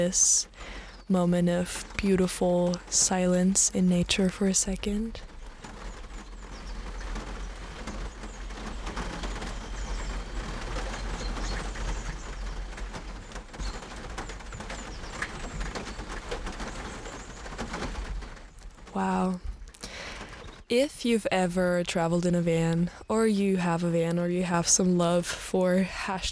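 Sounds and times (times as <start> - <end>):
speech: 0.0 - 5.3, 20.8 - 26.3
rain on a van roof: 0.0 - 26.3
birds chirping and cooing: 5.8 - 17.6.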